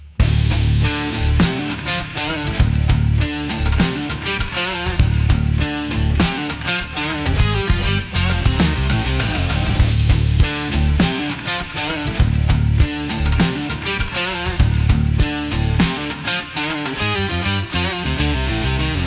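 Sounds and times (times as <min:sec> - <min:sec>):
instrumental music: 0:00.1 - 0:19.0.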